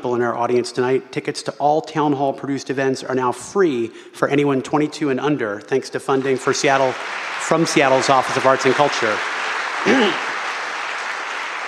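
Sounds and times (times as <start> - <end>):
speech: 0.0 - 10.3
audience applause: 6.2 - 11.6.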